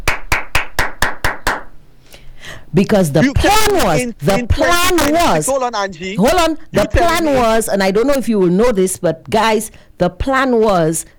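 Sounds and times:
sharp hand claps: 0.0s - 1.8s
speech: 2.7s - 11.1s.

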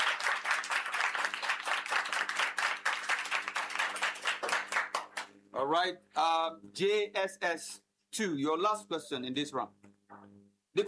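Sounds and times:
audience applause: 0.0s - 5.2s
speech: 5.6s - 10.8s.

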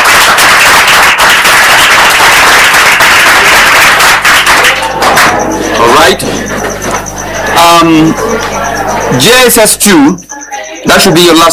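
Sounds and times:
audience applause: 0.0s - 6.2s
speech: 7.8s - 11.5s.

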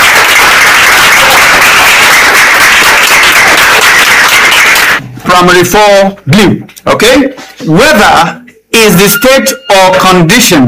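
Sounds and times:
applause: 0.0s - 5.0s
speech: 5.4s - 10.6s.

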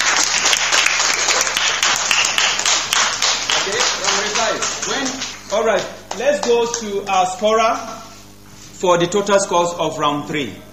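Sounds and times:
audience applause: 0.0s - 6.8s
speech: 5.6s - 8.1s, 8.8s - 10.7s.

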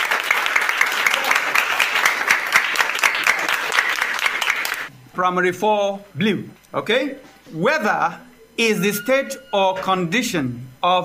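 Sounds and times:
crowd applause: 0.0s - 4.9s
speech: 5.2s - 11.0s.

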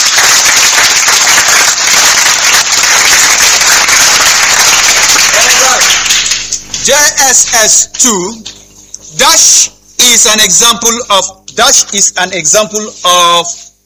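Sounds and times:
crowd applause: 0.0s - 6.6s
speech: 7.2s - 8.4s, 9.5s - 13.7s.

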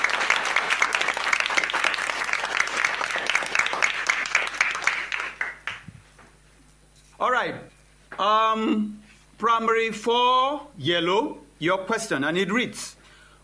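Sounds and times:
applause: 0.0s - 6.0s
speech: 7.4s - 13.0s.

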